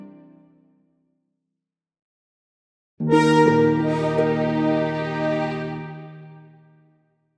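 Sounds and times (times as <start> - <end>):
neutral orchestral jingle: 3.1 - 5.8.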